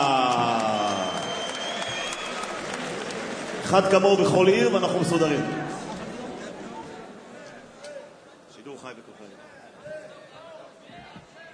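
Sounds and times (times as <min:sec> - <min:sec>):
crowd cheering and whooping: 0:00.0 - 0:03.3
audience applause: 0:00.0 - 0:04.4
speech: 0:03.7 - 0:05.8, 0:08.9 - 0:10.0.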